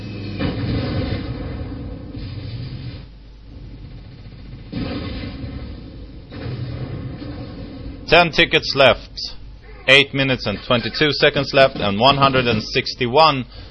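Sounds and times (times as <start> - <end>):
heavy tank cannon blasts in a video game: 0.2 - 8.4
speech: 8.1 - 13.6.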